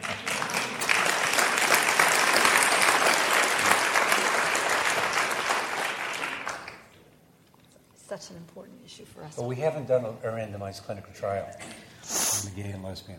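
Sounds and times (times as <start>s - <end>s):
crowd applause: 0.0s - 7.0s
speech: 9.0s - 11.7s, 12.5s - 13.1s.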